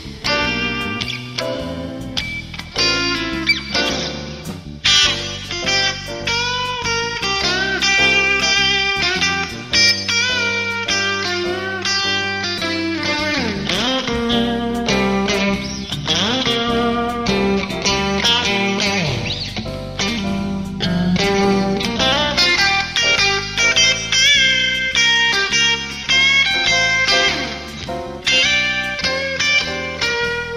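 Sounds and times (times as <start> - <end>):
bridge pickup electric guitar solo: 0.0 - 30.5.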